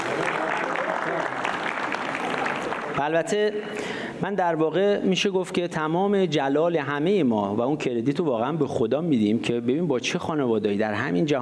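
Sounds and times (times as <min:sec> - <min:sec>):
men in an audience clapping: 0:00.0 - 0:03.2
speech: 0:03.0 - 0:11.3.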